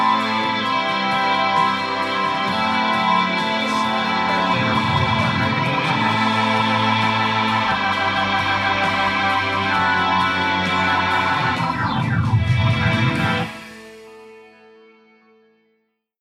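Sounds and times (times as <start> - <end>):
Hammond Mellotron: 0.0 - 15.0.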